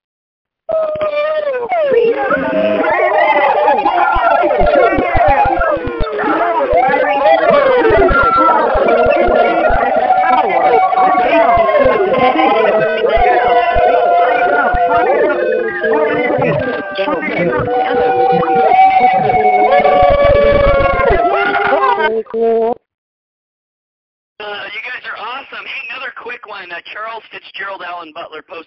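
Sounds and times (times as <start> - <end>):
callers screaming and cheering over phone lines: 0.7 - 22.2
speech: 22.2 - 22.8, 26.6 - 28.6.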